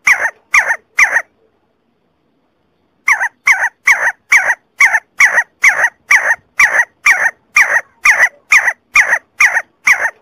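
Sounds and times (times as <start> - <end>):
See-see partridge calls: 0.0 - 1.3, 3.0 - 10.1.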